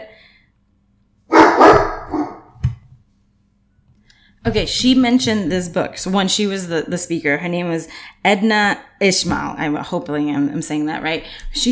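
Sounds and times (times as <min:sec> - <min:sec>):
dog barking: 0:01.3 - 0:02.6
speech: 0:04.4 - 0:11.7.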